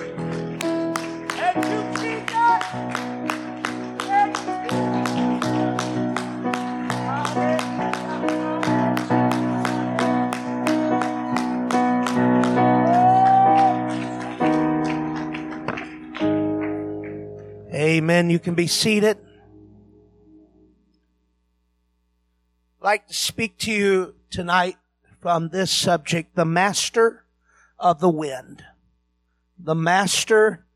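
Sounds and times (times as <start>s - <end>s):
audience clapping in rhythm: 0.0s - 18.1s
loud sustained keyboard chords: 0.0s - 21.1s
speech: 18.3s - 19.2s, 22.9s - 27.2s, 27.8s - 28.7s, 29.6s - 30.6s.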